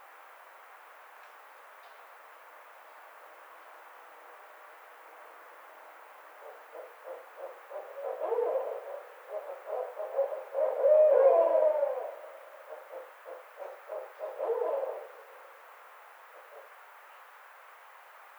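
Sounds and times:
Barred owl hooting: 6.4s - 15.5s.

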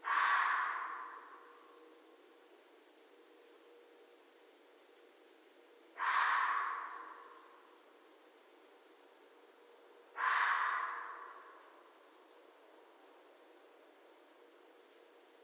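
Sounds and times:
red fox calling: 0.0s - 1.8s, 6.0s - 7.8s, 10.1s - 12.0s.

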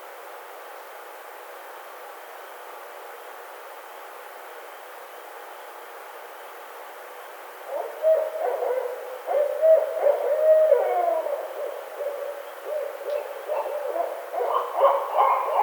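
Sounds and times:
Barred Owl calling: 7.6s - 15.6s.

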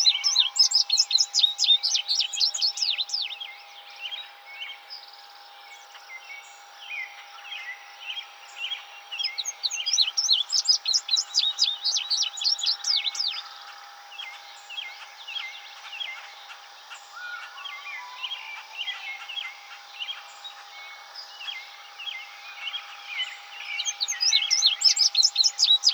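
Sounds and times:
Indigo Bunting singing: 0.0s - 25.9s.

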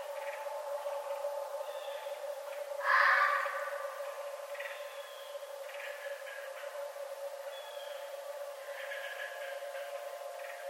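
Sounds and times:
steady low hum: 0.0s - 10.6s
red fox rasping cry: 2.8s - 4.0s.

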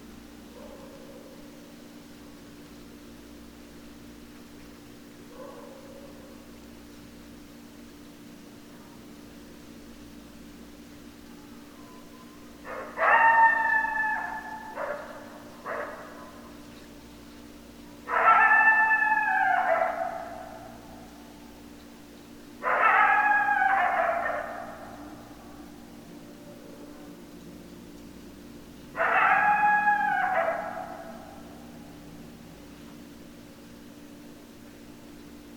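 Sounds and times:
low hum: 0.0s - 35.5s
coyote group howling: 11.8s - 16.6s, 18.0s - 21.2s, 22.6s - 27.6s, 28.9s - 32.4s.

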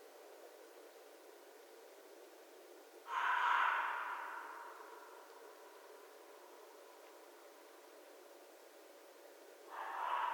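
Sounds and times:
red fox raspy cry: 3.1s - 4.8s.

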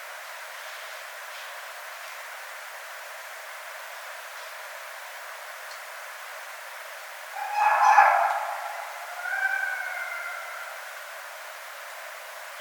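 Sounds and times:
red fox calling: 7.3s - 11.0s.

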